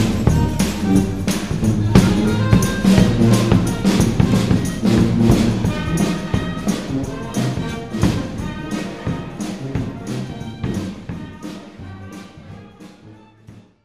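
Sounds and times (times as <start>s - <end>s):
brass band playing: 0.0s - 13.8s.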